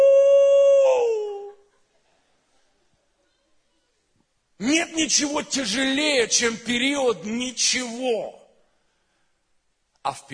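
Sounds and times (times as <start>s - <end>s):
dog-like howl: 0.0s - 1.6s
speech: 5.0s - 8.4s, 10.0s - 10.3s.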